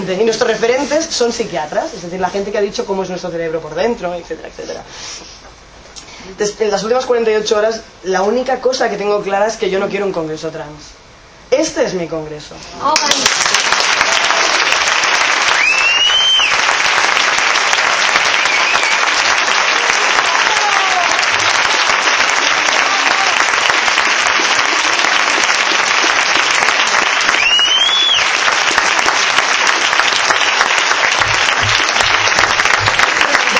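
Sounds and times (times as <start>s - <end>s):
speech: 0.1s - 5.5s, 6.2s - 13.6s
audience applause at a congress: 12.9s - 33.5s
whistles: 15.5s - 16.6s, 18.3s - 19.2s, 27.3s - 28.3s.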